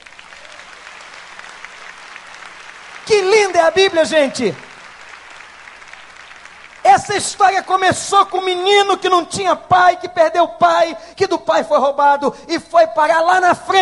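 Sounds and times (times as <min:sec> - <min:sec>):
audience applause: 0:00.0 - 0:08.4
person speaking loudly: 0:03.0 - 0:04.7, 0:06.8 - 0:13.7
speech: 0:03.1 - 0:04.7, 0:07.0 - 0:13.7.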